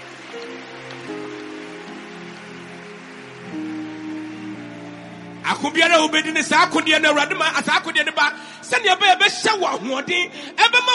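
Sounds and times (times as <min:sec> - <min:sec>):
audience clapping hands: 0:00.0 - 0:08.1
sustained low keyboard chords: 0:00.0 - 0:09.4
speech: 0:05.5 - 0:10.9.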